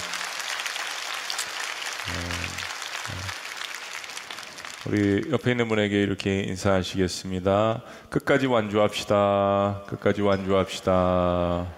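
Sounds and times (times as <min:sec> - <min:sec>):
audience applauding: 0:00.0 - 0:05.6
speech: 0:04.8 - 0:11.7.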